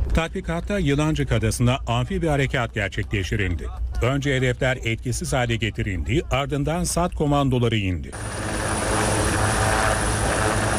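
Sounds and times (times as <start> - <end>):
speech: 0.2 - 8.4
military helicopters roaring during an amphibious assault exercise: 8.1 - 10.7.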